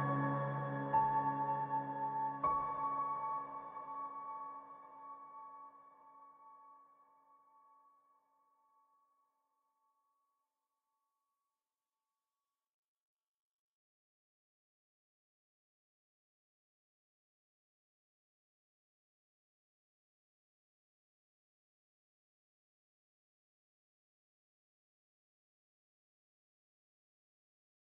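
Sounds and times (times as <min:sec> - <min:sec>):
piano: 0:00.0 - 0:07.5.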